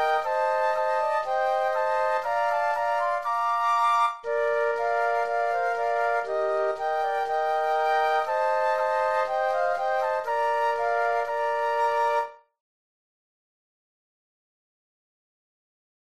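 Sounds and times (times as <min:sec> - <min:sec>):
flute trio playing: 0:00.0 - 0:12.4.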